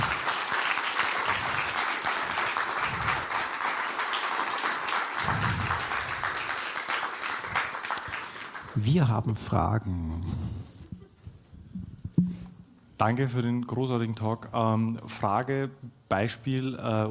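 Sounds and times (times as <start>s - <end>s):
loud applause: 0.0s - 8.8s
speech: 8.8s - 10.6s, 13.0s - 17.0s.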